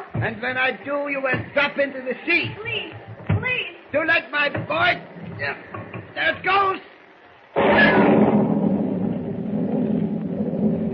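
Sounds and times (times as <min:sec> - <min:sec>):
speech: 0:00.2 - 0:03.1, 0:03.9 - 0:06.9
thunder crash during a storm at sea: 0:07.6 - 0:10.9.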